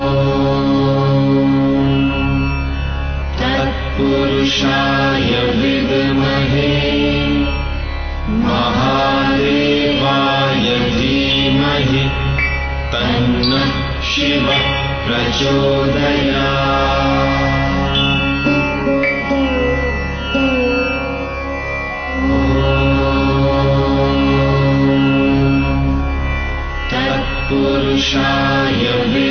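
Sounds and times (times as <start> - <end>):
devotional chant: 0.0 - 21.5, 22.1 - 29.2.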